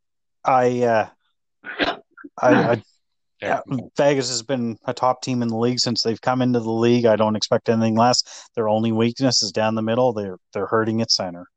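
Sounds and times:
speech: 0:00.5 - 0:01.2, 0:02.4 - 0:11.5
person coughing: 0:01.7 - 0:02.8.

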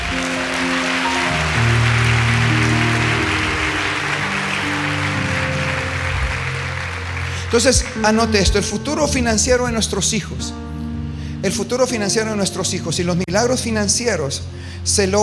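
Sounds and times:
loud audience applause: 0:00.0 - 0:08.8
speech: 0:07.5 - 0:10.6, 0:11.4 - 0:15.2.

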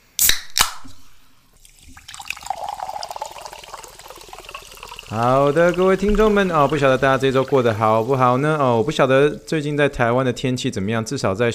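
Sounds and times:
sparkling water fizzing: 0:01.6 - 0:10.0
speech: 0:05.1 - 0:11.5.

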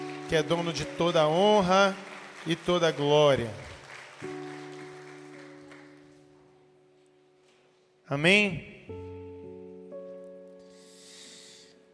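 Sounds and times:
audience applauding: 0:00.0 - 0:06.3
speech: 0:00.3 - 0:04.4, 0:08.1 - 0:09.0.

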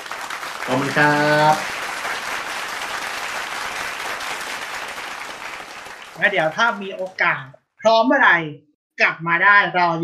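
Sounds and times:
crowd applauding: 0:00.0 - 0:07.2
speech: 0:00.7 - 0:01.8, 0:06.2 - 0:10.0.

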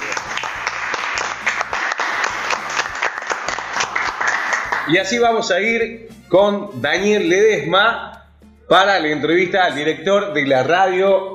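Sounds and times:
audience applause: 0:00.0 - 0:04.9
speech: 0:04.9 - 0:08.1, 0:08.7 - 0:11.3.

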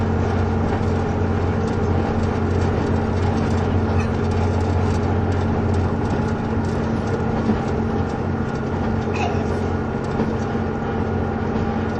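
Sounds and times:
KiHa 71 series Yufuin no Mori diesel train running: 0:00.0 - 0:11.9
constant humming tone: 0:00.0 - 0:11.9
fine rattle and ticking: 0:00.3 - 0:10.6.

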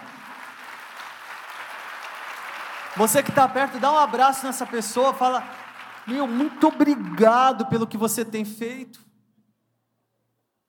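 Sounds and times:
audience applause: 0:00.0 - 0:07.8
speech: 0:03.0 - 0:09.1.

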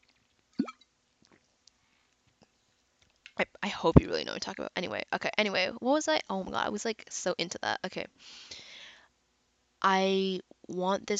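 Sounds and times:
person gulping water: 0:00.6 - 0:00.8
speech: 0:03.6 - 0:08.6, 0:09.8 - 0:11.1.

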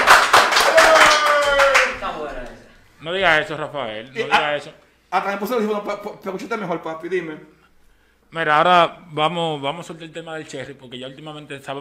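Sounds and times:
hand clapping: 0:00.0 - 0:02.6
speech: 0:03.0 - 0:07.6, 0:08.3 - 0:11.7.

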